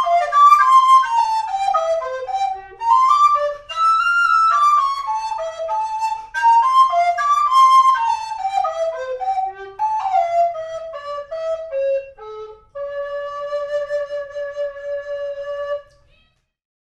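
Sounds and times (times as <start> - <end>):
alto recorder melody: 0.0 - 16.1.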